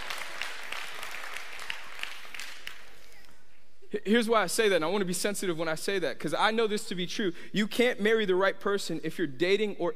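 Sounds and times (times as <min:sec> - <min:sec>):
audience applause: 0:00.0 - 0:03.0
speech: 0:03.9 - 0:09.9.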